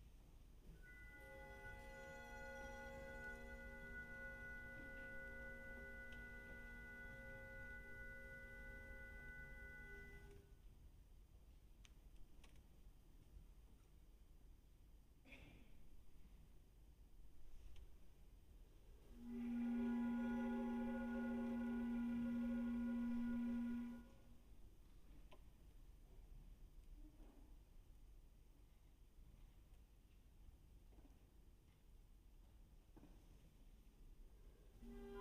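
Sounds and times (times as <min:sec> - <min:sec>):
orchestra music: 0:00.8 - 0:10.3, 0:19.1 - 0:24.3, 0:34.8 - 0:35.1.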